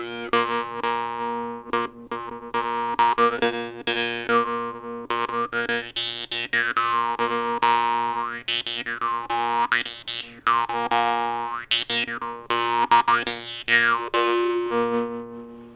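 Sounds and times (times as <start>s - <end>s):
high jaw harp vargan: 0.0s - 15.7s.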